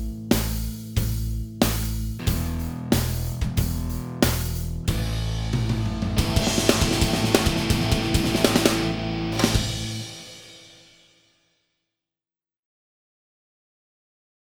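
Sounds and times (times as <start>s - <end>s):
heavy metal backing track: 0.0s - 10.8s.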